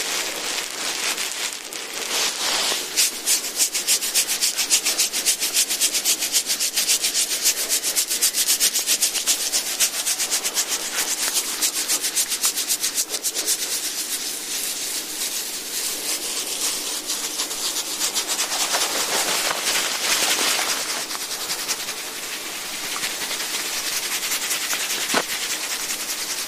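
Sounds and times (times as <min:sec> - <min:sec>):
massage instruments rubbing and scraping: 0:00.0 - 0:26.4.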